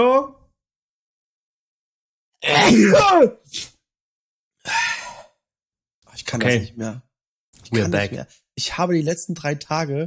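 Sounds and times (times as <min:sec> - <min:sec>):
person groaning: 0:02.4 - 0:03.2, 0:07.8 - 0:08.2
person sneezing: 0:02.4 - 0:03.7
speech: 0:02.5 - 0:03.7, 0:06.2 - 0:10.0.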